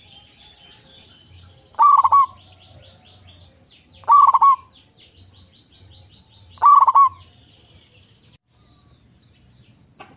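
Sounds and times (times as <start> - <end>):
zebra dove cooing: 0.7 - 4.7, 6.6 - 7.3.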